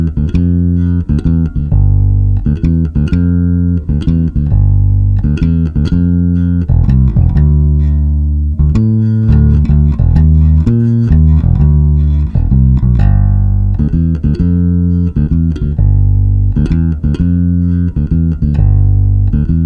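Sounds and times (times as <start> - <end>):
blues bass line: 0.0 - 19.6.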